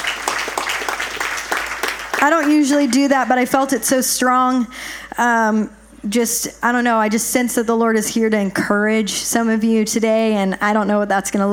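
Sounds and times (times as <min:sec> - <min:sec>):
crowd applauding: 0:00.0 - 0:03.3
speech: 0:02.2 - 0:11.5.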